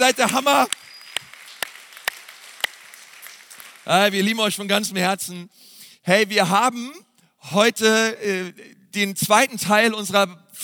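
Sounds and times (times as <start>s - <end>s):
speech: 0.0s - 0.8s, 3.9s - 10.6s
slow handclaps: 0.0s - 3.9s.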